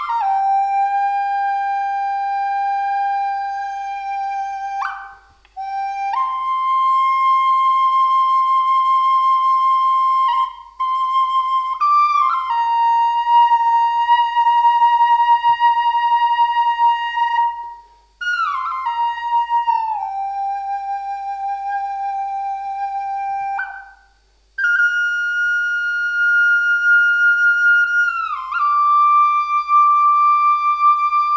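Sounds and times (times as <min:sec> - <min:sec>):
puriri and walnut forest flute in G minor: 0:00.0 - 0:31.3.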